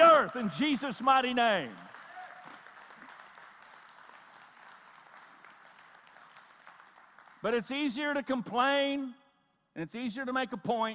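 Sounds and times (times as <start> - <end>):
speech: 0.3 - 1.9, 7.4 - 9.2, 9.8 - 10.9
audience applause: 1.4 - 7.4.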